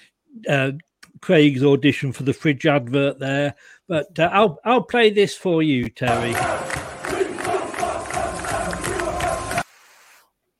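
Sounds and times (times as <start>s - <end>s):
speech: 0.3s - 6.7s
football fans chanting: 6.1s - 9.6s.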